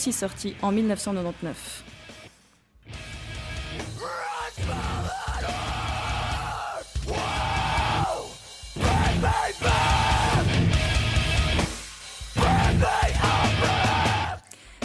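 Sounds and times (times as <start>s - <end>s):
speech: 0.0s - 1.9s
chaotic mathcore metal instruments: 2.9s - 14.4s
harsh screamed vocals: 3.8s - 10.9s, 12.4s - 14.4s.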